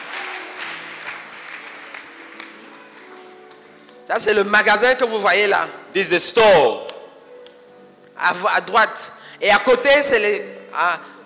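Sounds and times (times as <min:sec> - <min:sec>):
audience clapping: 0:00.0 - 0:03.6
speech: 0:04.1 - 0:06.9, 0:08.2 - 0:11.1.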